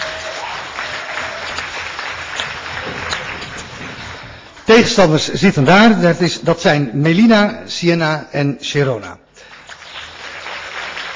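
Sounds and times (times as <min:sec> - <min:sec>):
audience applause: 0:00.0 - 0:04.4, 0:09.4 - 0:11.1
speech: 0:04.9 - 0:09.2.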